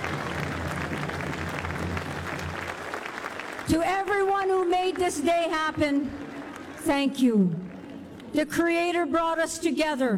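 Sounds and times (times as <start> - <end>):
audience applause: 0.0 - 5.1, 5.9 - 6.9
speech: 3.7 - 6.2, 6.8 - 7.6, 8.3 - 10.1.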